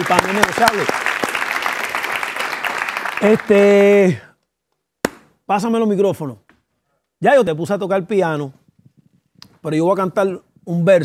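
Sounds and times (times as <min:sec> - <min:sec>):
speech: 0:00.0 - 0:01.2, 0:03.2 - 0:04.3, 0:05.5 - 0:06.4, 0:07.2 - 0:08.6, 0:09.6 - 0:11.0
applause: 0:00.0 - 0:03.9.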